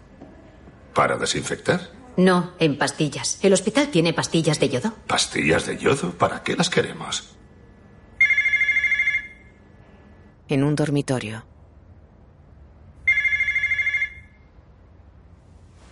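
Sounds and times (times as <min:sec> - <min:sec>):
speech: 0:01.0 - 0:07.4, 0:10.5 - 0:11.5
telephone bell ringing: 0:08.2 - 0:09.7, 0:13.0 - 0:14.6.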